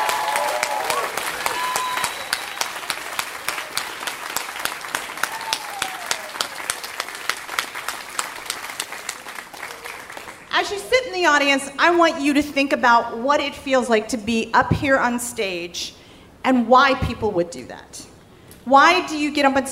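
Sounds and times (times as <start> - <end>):
audience applause for a storyteller at a live storytelling show: 0.0 - 10.5
speech: 10.6 - 18.0, 18.6 - 19.7.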